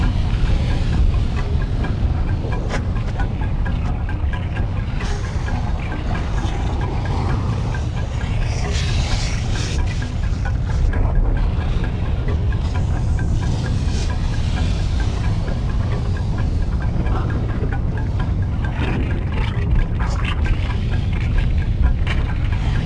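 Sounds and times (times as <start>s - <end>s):
volcano ambience: 0.0s - 22.8s.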